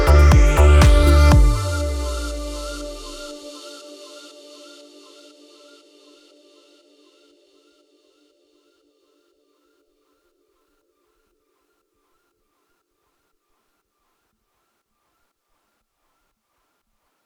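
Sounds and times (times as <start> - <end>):
deep house strings solo: 0.0 - 3.4.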